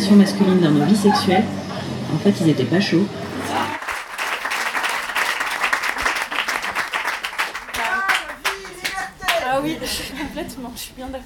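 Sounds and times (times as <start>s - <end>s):
speech: 0.1s - 3.8s, 9.9s - 11.2s
audience applause: 3.2s - 9.4s.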